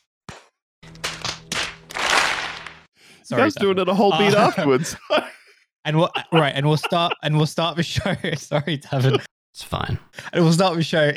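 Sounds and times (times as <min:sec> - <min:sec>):
single hand clap on countdown: 0:01.0 - 0:02.8
speech: 0:03.3 - 0:11.1
laughter: 0:03.4 - 0:09.3.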